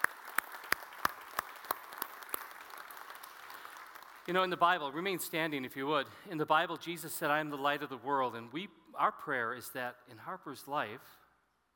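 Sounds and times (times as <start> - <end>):
congregation applauding: 0.0 - 4.3
speech: 4.3 - 11.2.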